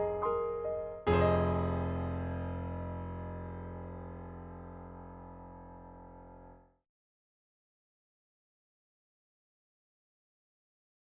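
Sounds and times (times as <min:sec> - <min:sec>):
Steinway piano: 0:00.0 - 0:06.8.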